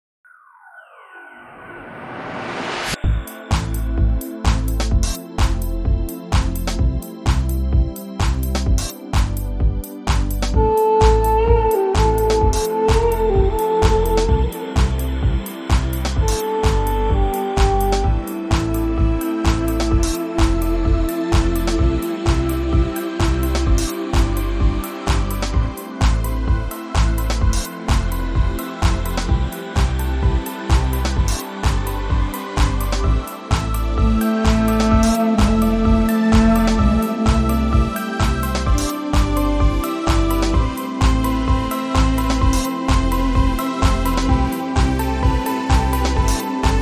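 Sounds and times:
Middle Eastern music: 0:02.9 - 0:46.7.

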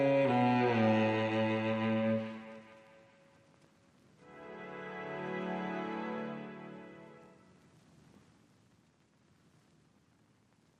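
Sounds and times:
strings: 0:00.0 - 0:03.2, 0:04.2 - 0:07.5.

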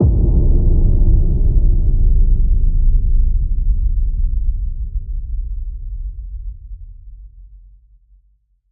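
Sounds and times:
distant gravity boom: 0:00.0 - 0:05.3.

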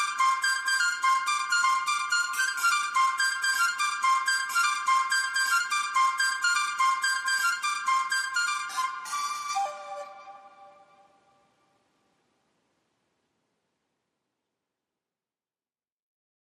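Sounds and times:
shakuhachi bamboo flute: 0:00.0 - 0:11.5.

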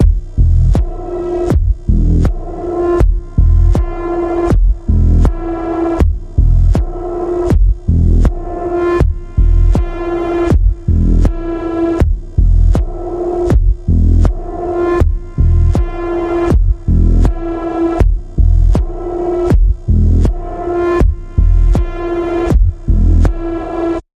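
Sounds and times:
throbbing pulse tone in the key of E: 0:00.0 - 0:24.0.

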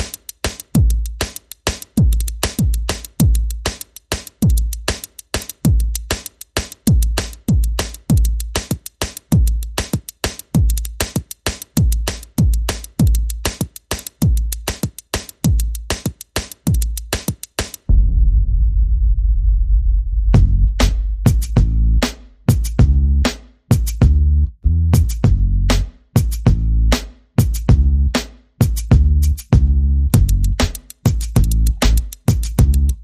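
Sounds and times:
percussion: 0:00.0 - 0:18.4, 0:20.3 - 0:24.3, 0:24.9 - 0:33.0
bass: 0:17.9 - 0:33.0.

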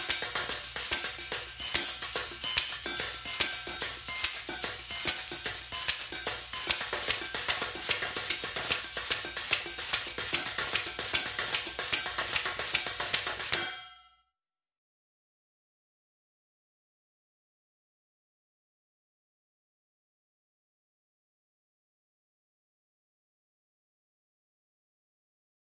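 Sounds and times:
high drums: 0:00.0 - 0:14.0.

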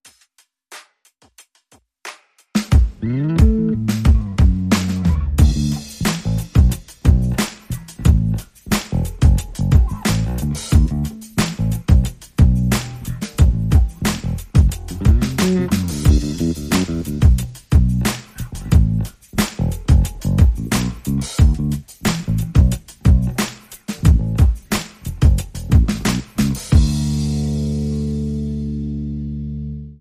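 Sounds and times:
drum and bass music: 0:00.1 - 0:29.5.

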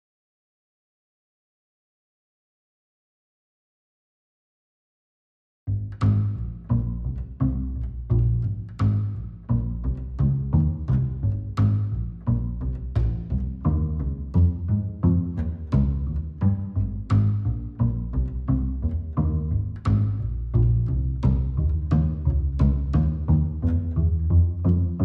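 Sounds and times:
bass: 0:05.7 - 0:25.0.

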